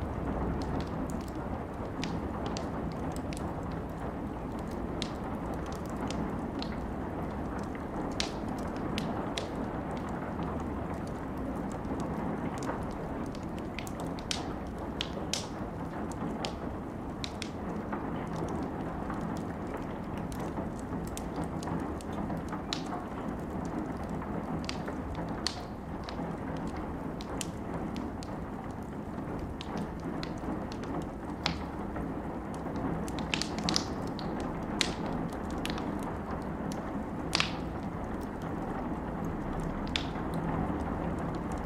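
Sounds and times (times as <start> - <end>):
campfire crackling and popping: 0.0 - 41.6.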